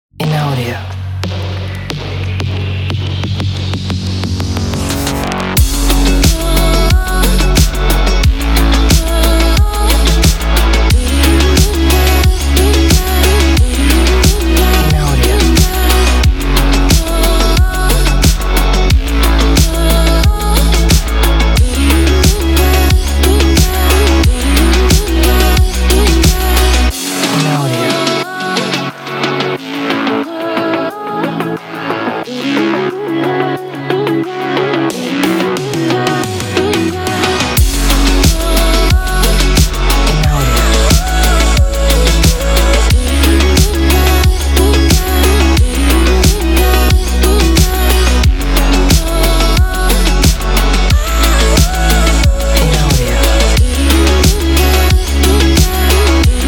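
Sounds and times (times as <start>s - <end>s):
synthwave music: 0.2s - 56.4s.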